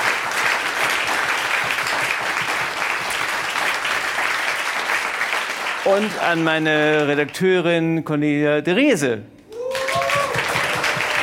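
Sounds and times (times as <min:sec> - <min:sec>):
audience applause: 0:00.0 - 0:07.1, 0:09.6 - 0:11.2
speech: 0:05.9 - 0:09.3.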